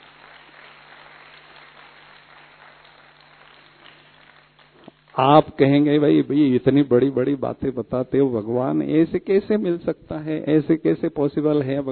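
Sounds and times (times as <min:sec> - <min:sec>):
audience clapping: 0:00.0 - 0:05.6
speech: 0:05.2 - 0:11.9.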